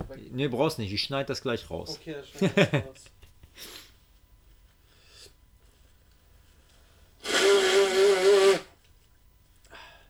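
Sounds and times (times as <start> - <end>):
speech: 0.4 - 3.8
nose blowing: 7.2 - 8.8.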